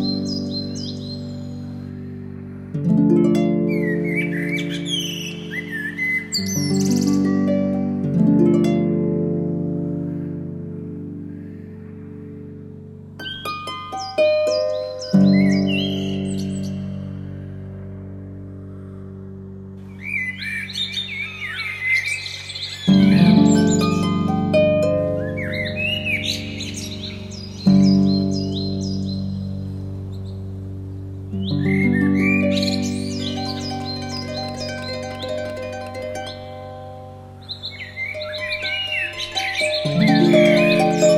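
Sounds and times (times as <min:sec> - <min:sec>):
classic harp playing in G major, C minor and D minor: 0:00.0 - 0:41.1.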